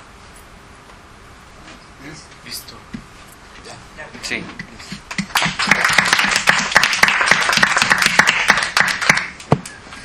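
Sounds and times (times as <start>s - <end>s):
speech: 2.0s - 5.0s
audience applause: 5.0s - 9.5s.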